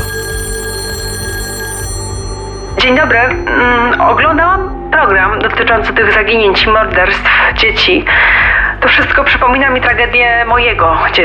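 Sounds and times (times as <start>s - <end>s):
telephone ringing with a metallic bell trill: 0.0s - 4.9s
low hum: 0.0s - 10.6s
speech: 2.8s - 11.2s.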